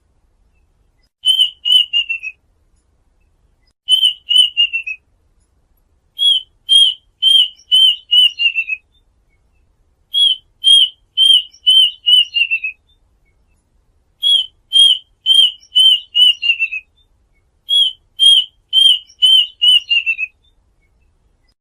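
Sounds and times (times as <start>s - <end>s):
duck whistling calls: 1.2s - 2.4s, 3.9s - 5.0s, 6.2s - 8.8s, 10.2s - 12.8s, 14.2s - 16.8s, 17.7s - 20.3s.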